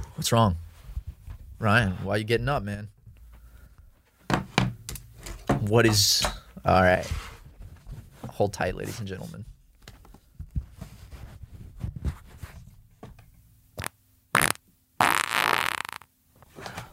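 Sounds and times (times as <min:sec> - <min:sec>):
speech: 0:00.2 - 0:00.6, 0:01.6 - 0:03.0, 0:05.6 - 0:07.3, 0:08.4 - 0:09.5
fart into the microphone: 0:13.8 - 0:16.1.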